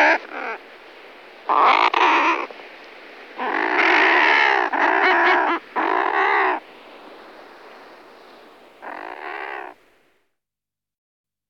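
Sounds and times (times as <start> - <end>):
thick-billed murre growling call: 0.0 - 0.6, 1.5 - 2.5, 3.4 - 6.6, 8.8 - 9.8.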